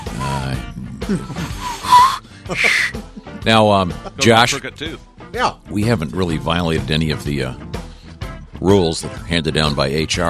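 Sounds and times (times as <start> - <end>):
speech: 0.5 - 7.7, 8.6 - 10.2
whistle blown: 1.8 - 3.0.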